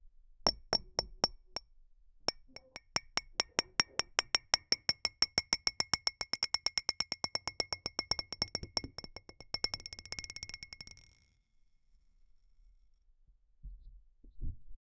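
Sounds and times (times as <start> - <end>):
glass ball bouncing: 0.5 - 1.6, 2.3 - 11.2.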